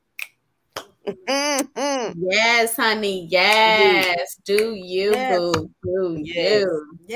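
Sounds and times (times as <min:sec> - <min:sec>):
speech: 0:01.1 - 0:07.1
hand claps: 0:03.5 - 0:05.7.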